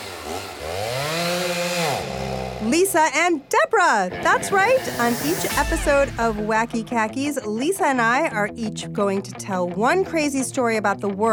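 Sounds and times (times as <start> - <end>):
chainsaw sound effect revving: 0.0 - 3.0
speech: 2.6 - 11.3.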